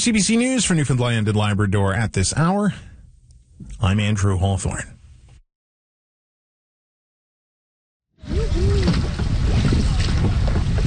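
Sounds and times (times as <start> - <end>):
speech: 0.0 - 2.9, 3.6 - 5.0
wind and water noise while paddling a boat on Gander Lake, Newfoundland: 8.2 - 10.8.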